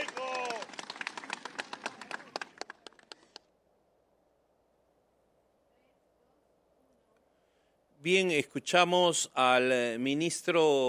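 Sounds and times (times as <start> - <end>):
crowd applause: 0.0 - 3.5
speech: 8.0 - 10.8.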